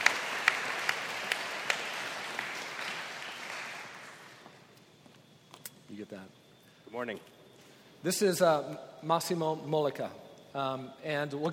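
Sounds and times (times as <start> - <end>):
crowd applauding: 0.0 - 4.7
speech: 6.0 - 7.4, 8.0 - 11.5.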